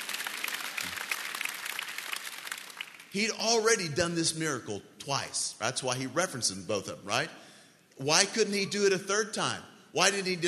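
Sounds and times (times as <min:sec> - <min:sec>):
audience clapping: 0:00.0 - 0:03.2
speech: 0:03.1 - 0:07.4, 0:08.0 - 0:10.4.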